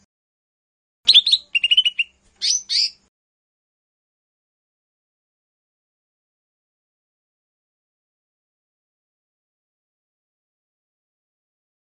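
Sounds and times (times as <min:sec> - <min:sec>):
Lesser green leafbird song with chirps and buzzy trills: 0:01.1 - 0:03.1.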